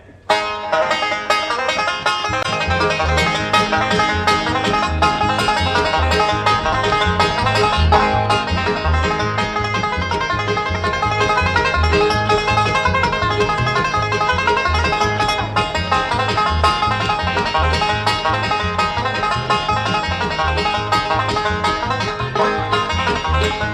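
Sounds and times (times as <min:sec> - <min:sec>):
banjo: 0:00.3 - 0:23.7.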